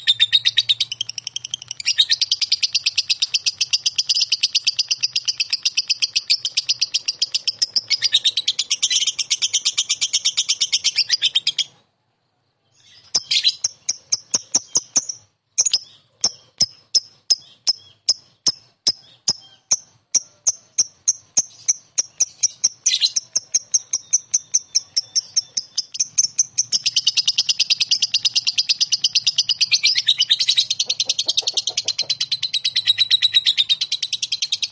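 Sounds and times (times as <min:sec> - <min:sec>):
lovebird chirping: 0:00.0 - 0:34.7.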